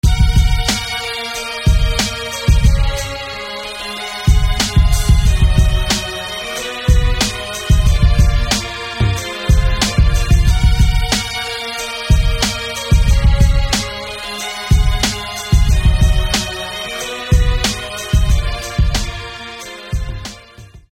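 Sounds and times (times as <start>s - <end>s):
violin: 0.0s - 20.9s.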